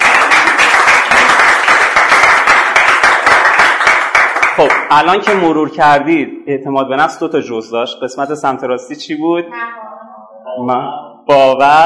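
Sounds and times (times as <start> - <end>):
audience applauding at a lecture on self-confidence: 0.0 - 5.4
speech: 4.6 - 9.8, 10.6 - 11.8.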